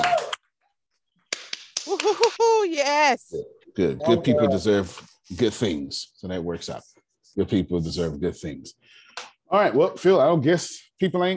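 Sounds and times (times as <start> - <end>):
hand clapping: 1.3 - 3.0
speech: 1.9 - 11.3.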